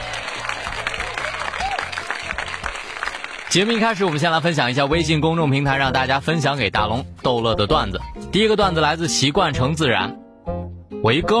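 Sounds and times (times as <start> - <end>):
applause: 0.0 - 5.0
speech: 3.6 - 10.2, 11.0 - 11.3.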